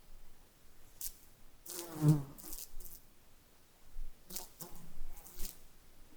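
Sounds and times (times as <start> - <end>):
fly wings buzzing: 1.0 - 3.0, 4.3 - 5.6.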